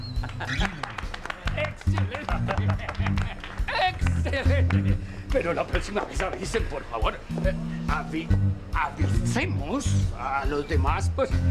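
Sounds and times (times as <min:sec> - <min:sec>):
audience applause: 0:00.0 - 0:04.9
laughter: 0:00.0 - 0:07.8
speech: 0:04.4 - 0:11.4.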